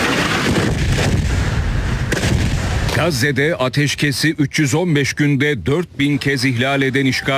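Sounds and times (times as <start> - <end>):
explosions during an attack on tents sheltering people in Gaza: 0.0 - 3.6
speech: 3.0 - 7.3.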